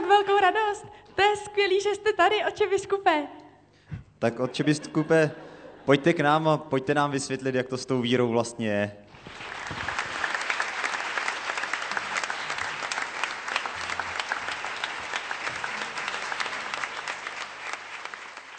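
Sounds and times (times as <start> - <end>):
speech: 0.2 - 3.4, 4.2 - 9.9
audience applauding: 9.1 - 18.5.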